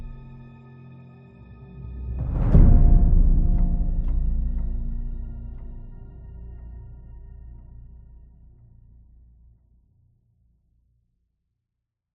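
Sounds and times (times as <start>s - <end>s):
tense music loop: 1.5s - 8.0s.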